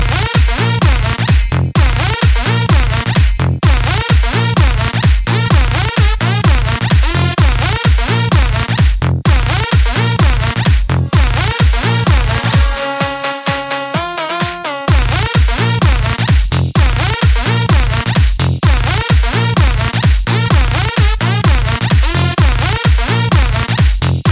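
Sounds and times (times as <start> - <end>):
bass rhythms: 0.0 - 24.2.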